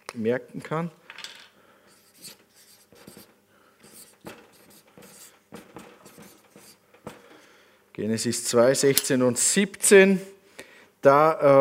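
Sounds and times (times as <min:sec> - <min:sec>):
speech: 0:00.1 - 0:01.2, 0:08.0 - 0:10.4, 0:11.0 - 0:11.6
handwriting of Bible verse notes: 0:01.9 - 0:07.2.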